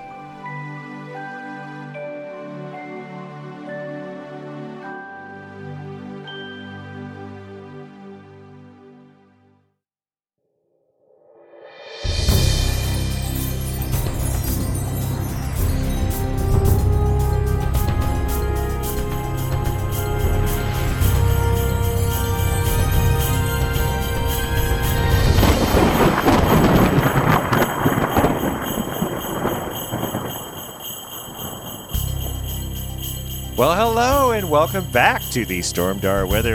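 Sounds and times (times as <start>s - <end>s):
sleigh bells jingling: 12.6s - 36.5s
speech: 33.6s - 36.5s.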